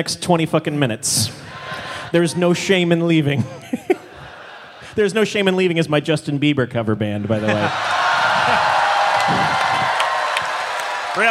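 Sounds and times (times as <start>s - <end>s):
speech: 0.0s - 3.9s, 5.0s - 8.6s, 9.3s - 9.6s
laughter: 1.5s - 5.7s, 7.2s - 9.7s
audience applause: 7.4s - 11.2s.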